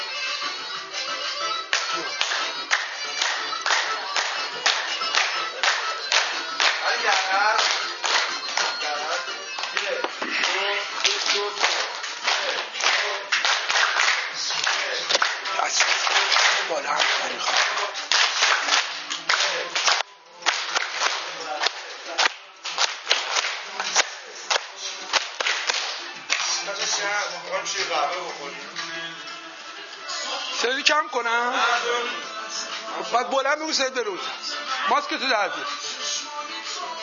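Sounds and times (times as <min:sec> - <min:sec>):
lively song: 0:00.0 - 0:37.0
hands clapping along to a lively song: 0:01.6 - 0:27.1
speech: 0:33.2 - 0:35.8.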